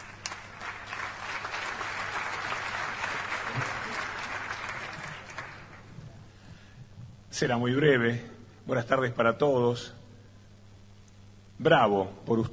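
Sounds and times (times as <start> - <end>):
audience applause: 0.0 - 6.0
speech: 7.4 - 10.0, 11.6 - 12.5.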